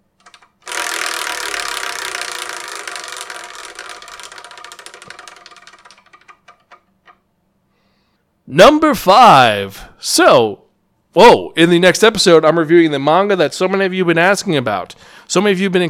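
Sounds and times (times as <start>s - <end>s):
prize wheel spinning and clicking: 0.2s - 6.8s
speech: 8.5s - 15.8s.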